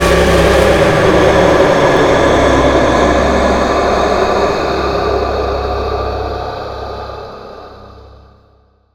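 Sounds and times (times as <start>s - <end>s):
scare sound: 0.0s - 7.8s.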